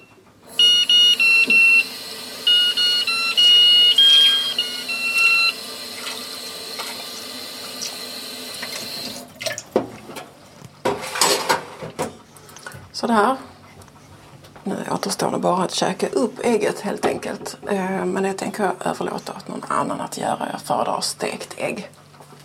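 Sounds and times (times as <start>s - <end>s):
running tap water: 0.4s - 10.1s
musical egg timer beeping a high electronic melody: 2.4s - 5.5s
water splashing: 8.5s - 9.8s
speech: 13.0s - 13.5s, 14.9s - 22.0s.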